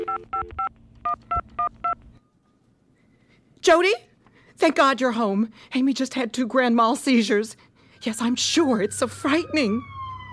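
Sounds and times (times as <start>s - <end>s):
telephone number dialed on a touch-tone keypad: 0.0s - 0.7s
faint hum: 0.0s - 8.9s
speech: 3.6s - 10.3s.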